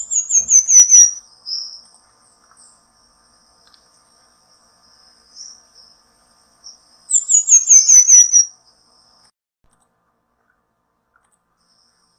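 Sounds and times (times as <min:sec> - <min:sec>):
Pin-tailed manakin song: 0:00.0 - 0:01.9, 0:06.6 - 0:08.6.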